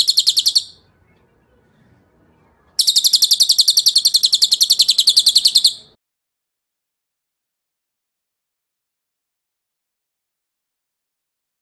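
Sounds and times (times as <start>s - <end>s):
bird song of high chirps: 0.0s - 1.6s, 2.3s - 6.0s.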